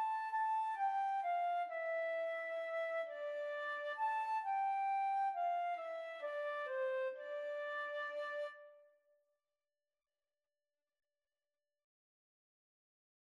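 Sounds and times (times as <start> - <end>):
flute duet: 0.0 - 8.8.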